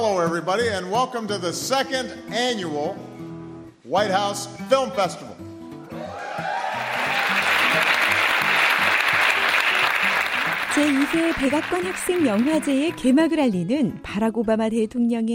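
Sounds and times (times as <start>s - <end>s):
speech: 0.2s - 3.2s, 3.9s - 5.4s, 10.8s - 15.3s
audience cheering: 5.9s - 13.0s
applause: 6.4s - 13.0s.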